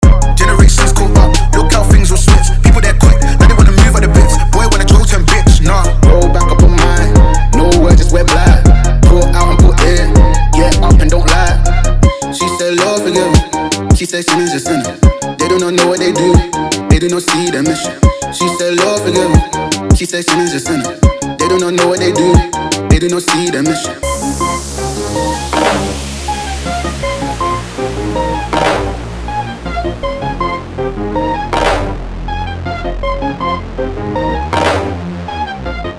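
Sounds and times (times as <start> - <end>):
music with vocals: 0.0 - 35.9.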